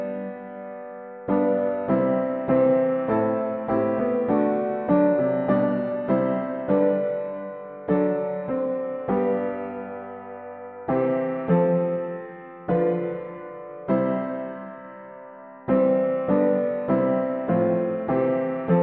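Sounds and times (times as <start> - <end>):
hymn on piano: 0.0 - 18.8.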